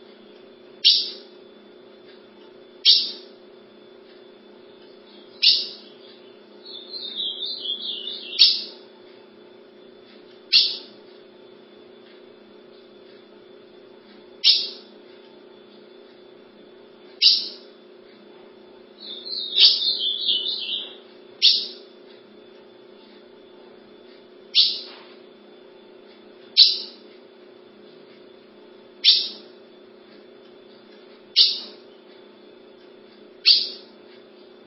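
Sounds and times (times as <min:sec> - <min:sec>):
Ultramarine grosbeak song: 0:00.8 - 0:01.3, 0:02.9 - 0:03.3, 0:05.1 - 0:08.8, 0:10.5 - 0:10.9, 0:14.4 - 0:14.8, 0:17.2 - 0:17.7, 0:19.0 - 0:21.8, 0:24.6 - 0:25.0, 0:26.6 - 0:27.0, 0:29.0 - 0:29.5, 0:31.4 - 0:31.8, 0:33.4 - 0:33.9.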